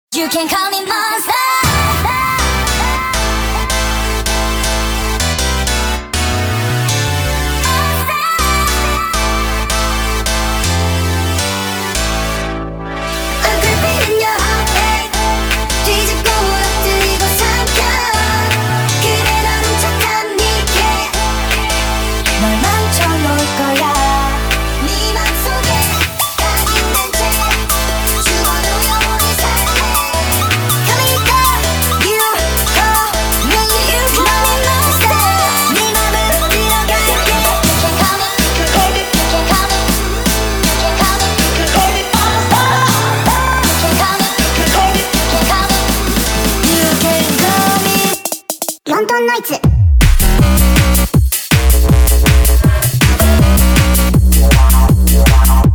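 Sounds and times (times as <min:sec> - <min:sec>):
nightcore bass remix: 0:01.3 - 0:55.7.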